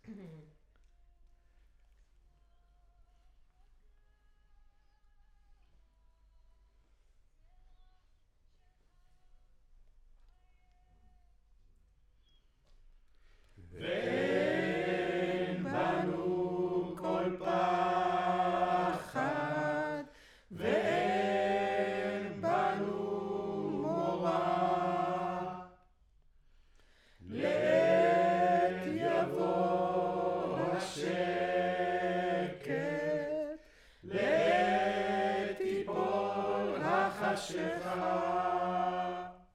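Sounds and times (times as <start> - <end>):
choir singing: 13.8 - 25.8, 27.2 - 39.5.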